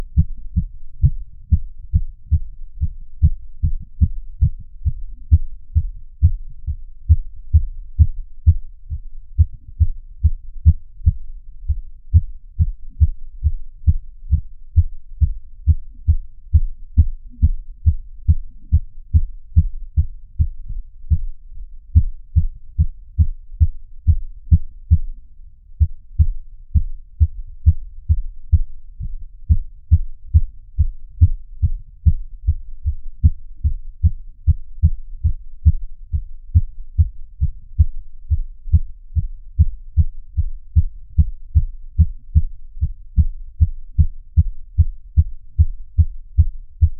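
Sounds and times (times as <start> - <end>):
heart beating: 0.0 - 25.2, 25.8 - 46.9.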